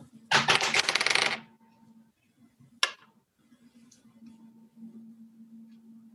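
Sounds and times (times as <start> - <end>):
dice rolling in a tabletop role-playing game: 0.6 - 1.4.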